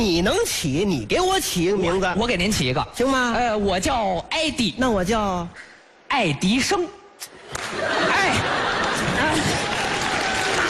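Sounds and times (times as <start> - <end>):
speech: 0.0 - 8.6
laughter: 7.3 - 10.6
audience clapping: 8.5 - 10.6.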